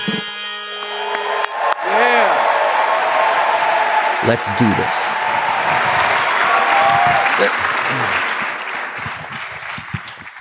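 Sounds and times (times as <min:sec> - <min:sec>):
loud audience applause: 0:00.7 - 0:10.3
audience whoops and cheers: 0:00.8 - 0:04.5, 0:05.1 - 0:08.2
speech: 0:04.2 - 0:05.4.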